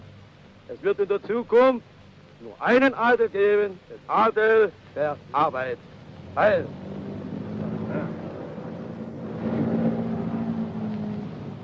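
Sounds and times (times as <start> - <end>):
faint rushing hiss: 0.0 - 11.6
speech: 0.7 - 6.9
three-engine Junkers aircraft propeller engines droning: 5.8 - 11.6.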